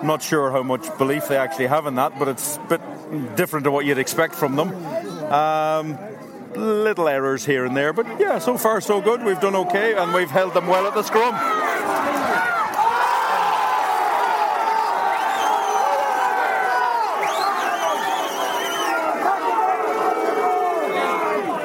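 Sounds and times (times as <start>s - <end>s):
speech: 0.0s - 12.2s
stadium crowd roaring in disapproval at a rugby tackle: 8.4s - 21.6s
scattered whistles from stadium crowd: 15.1s - 16.0s, 17.2s - 19.1s.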